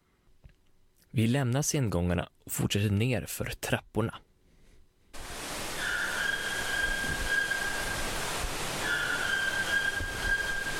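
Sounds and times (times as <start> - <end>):
hiss: 0.0 - 10.7
speech: 1.2 - 4.3
white-throated toucan calling: 5.7 - 8.0, 8.8 - 10.7.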